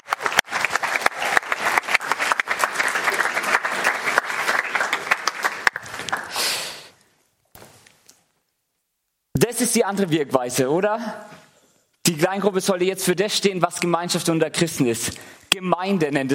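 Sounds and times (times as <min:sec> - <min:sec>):
loud applause: 0:00.0 - 0:06.8
speech: 0:09.6 - 0:11.3, 0:12.1 - 0:16.3.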